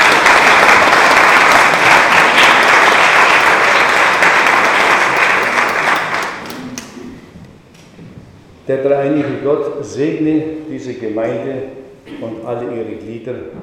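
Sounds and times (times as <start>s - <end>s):
audience applause: 0.0s - 7.0s
speech: 8.7s - 13.6s.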